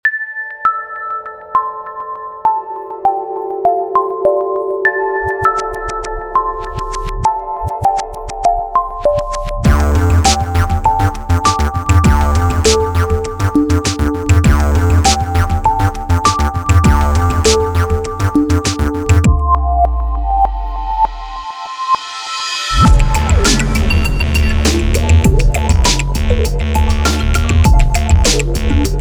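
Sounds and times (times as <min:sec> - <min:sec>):
electro music: 0:00.0 - 0:28.9.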